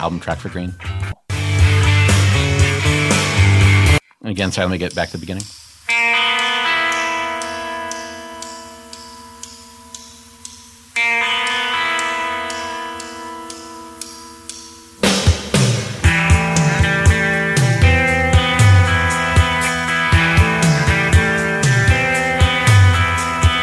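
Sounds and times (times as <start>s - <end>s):
speech: 0.0s - 1.1s, 4.3s - 6.1s
droning guitar chords: 0.7s - 4.0s, 5.9s - 23.6s
full rock band with drums and bass: 1.3s - 4.0s, 5.9s - 9.1s, 11.0s - 23.6s.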